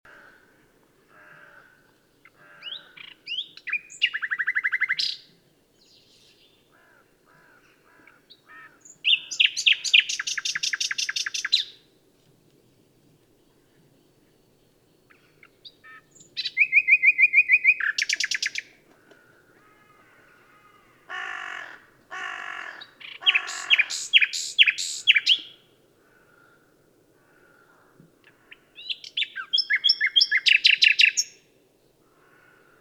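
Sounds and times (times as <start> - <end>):
common nightingale song: 2.2 - 6.8, 7.6 - 11.9, 13.5 - 18.8, 22.7 - 25.7, 28.2 - 31.5.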